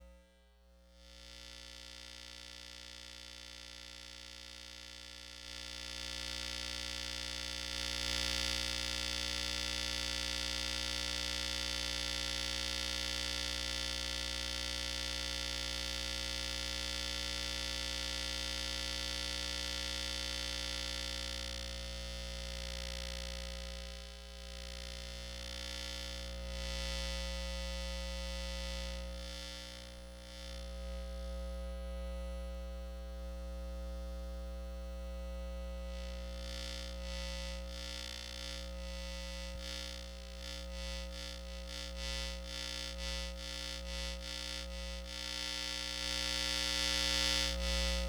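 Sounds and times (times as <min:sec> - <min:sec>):
electromagnetic field hum: 0:00.0 - 0:48.0.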